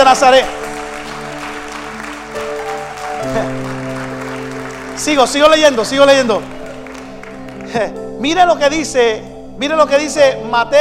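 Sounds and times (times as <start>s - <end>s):
audience clapping: 0.0s - 8.1s
sustained keyboard or organ chords: 0.0s - 10.7s
speech: 0.1s - 0.6s, 5.0s - 6.5s, 7.7s - 10.7s.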